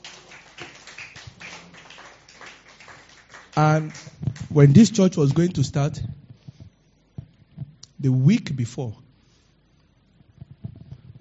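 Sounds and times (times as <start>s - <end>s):
audience clapping: 0.0s - 5.6s
speech: 3.6s - 6.1s, 8.0s - 9.0s.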